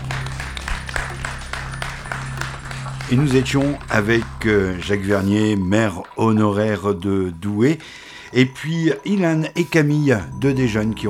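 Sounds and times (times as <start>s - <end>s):
light audience applause: 0.0s - 6.2s
speech: 3.1s - 11.0s.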